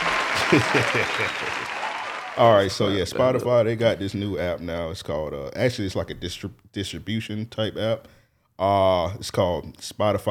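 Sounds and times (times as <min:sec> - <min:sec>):
clapping: 0:00.0 - 0:02.6
laughter: 0:00.0 - 0:03.5
speech: 0:00.5 - 0:01.7, 0:02.4 - 0:10.2.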